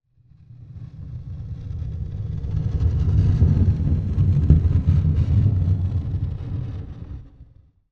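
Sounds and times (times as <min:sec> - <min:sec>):
heavy item dragged along hard floor: 0:01.8 - 0:07.6.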